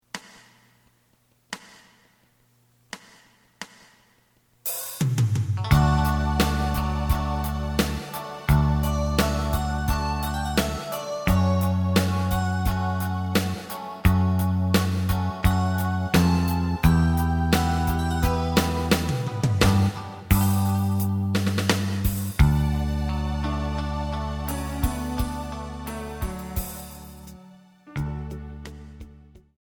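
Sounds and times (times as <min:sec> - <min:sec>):
lead melody: 0:05.6 - 0:29.4.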